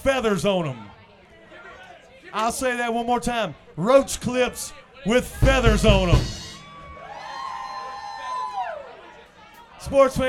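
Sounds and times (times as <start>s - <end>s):
speech: 0.0s - 0.9s, 2.3s - 6.4s, 9.9s - 10.2s
crowd cheering and whooping: 6.4s - 9.2s.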